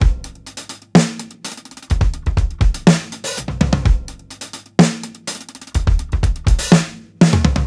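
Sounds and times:
drum loops: 0.0s - 7.6s
drum rolls: 1.7s - 4.2s, 5.7s - 7.6s.

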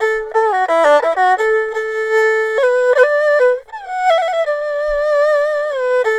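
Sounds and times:
erhu playing: 0.0s - 6.1s.

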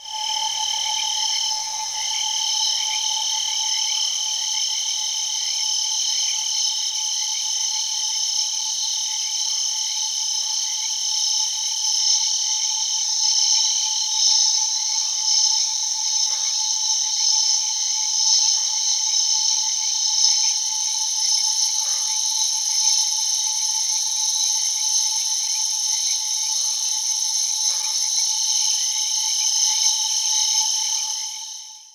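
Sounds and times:
crickets chirping: 0.0s - 31.9s.

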